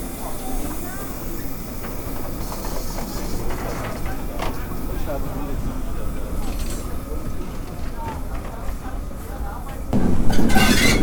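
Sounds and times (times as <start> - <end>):
steam locomotive rattling past tender first: 0.0 - 11.0.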